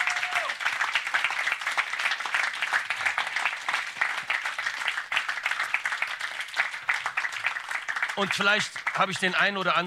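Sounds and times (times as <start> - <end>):
audience applause: 0.0 - 9.8
speech: 8.2 - 9.8.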